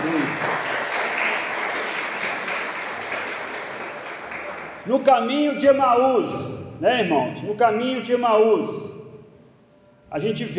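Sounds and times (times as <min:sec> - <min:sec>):
applause: 0:00.0 - 0:04.9
speech: 0:04.9 - 0:08.9, 0:10.1 - 0:10.5.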